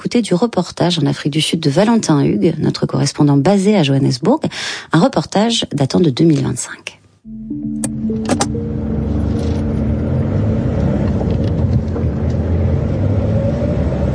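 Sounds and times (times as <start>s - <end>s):
speech: 0.1s - 7.9s
car driving, interior road rumble: 8.7s - 14.0s.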